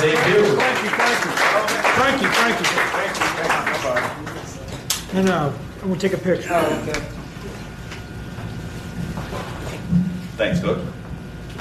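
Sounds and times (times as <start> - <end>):
crowd clapping and cheering: 0.0 - 5.1
speech: 5.2 - 7.2, 10.4 - 11.0.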